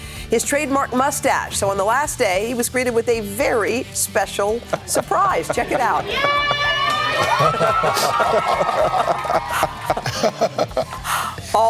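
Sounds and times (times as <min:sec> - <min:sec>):
speech: 0:00.3 - 0:06.6, 0:07.2 - 0:11.6
laughter: 0:04.6 - 0:11.2
students and teachers cheering and shouting: 0:05.4 - 0:10.1.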